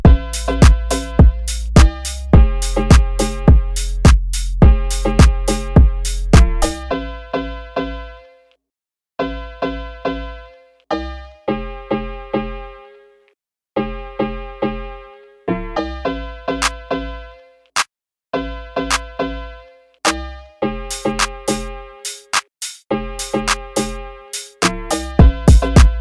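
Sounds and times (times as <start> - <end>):
phonk music: 0.0 - 8.0, 18.6 - 26.0.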